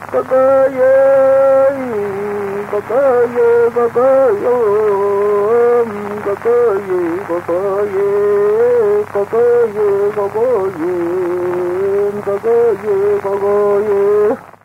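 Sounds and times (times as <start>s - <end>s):
Mapuche woman singing: 0.1s - 14.4s.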